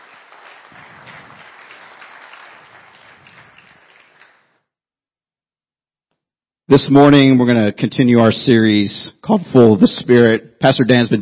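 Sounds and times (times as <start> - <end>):
church audience applause: 0.0 - 4.6
speech: 6.7 - 11.1.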